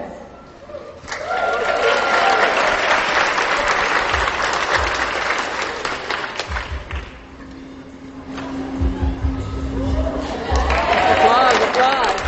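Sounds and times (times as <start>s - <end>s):
faint cheering: 0.7s - 2.9s, 8.8s - 12.2s
applause sound effect from button: 1.1s - 7.2s, 9.9s - 12.2s.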